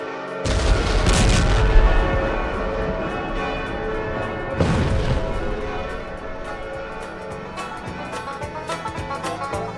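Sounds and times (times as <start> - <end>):
dynamite explosions: 0.4 - 7.6
ringing clanging: 1.1 - 9.5.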